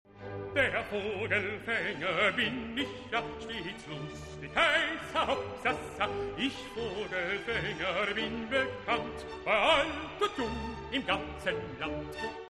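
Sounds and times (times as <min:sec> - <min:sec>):
baritone singing: 0:00.5 - 0:12.5.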